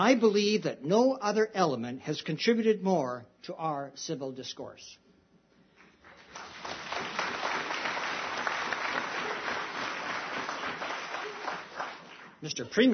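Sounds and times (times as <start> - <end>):
speech: 0.0 - 5.0, 12.4 - 12.9
audience applause: 6.0 - 12.4.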